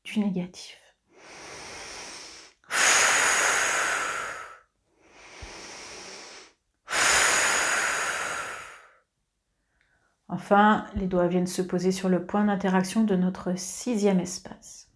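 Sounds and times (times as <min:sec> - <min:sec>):
speech: 0:00.2 - 0:00.8, 0:10.4 - 0:14.9
slow deep breathing during a guided relaxation exercise: 0:01.1 - 0:09.0.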